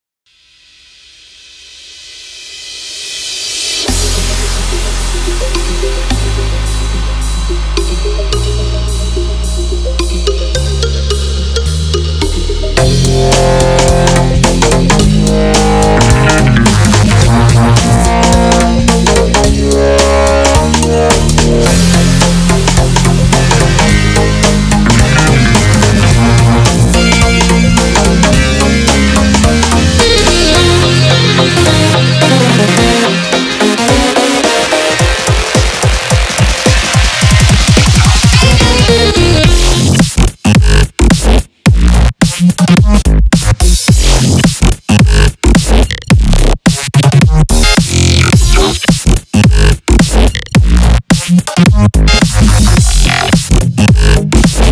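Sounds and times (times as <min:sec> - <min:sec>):
glitch hop music: 0:03.2 - 0:54.6.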